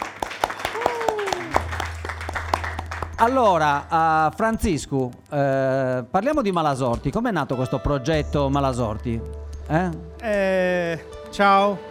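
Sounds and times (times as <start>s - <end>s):
audience applause: 0.0s - 3.4s
speech: 3.2s - 11.9s.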